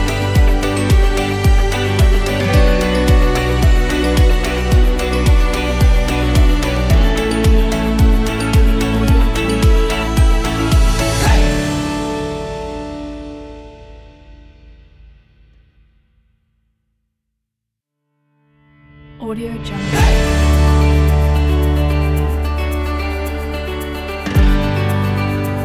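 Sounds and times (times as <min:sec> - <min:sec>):
happy acoustic folk music: 0:00.0 - 0:13.2, 0:20.0 - 0:25.6.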